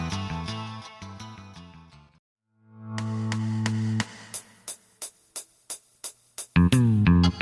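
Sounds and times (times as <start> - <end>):
drum: 3.0 - 7.3.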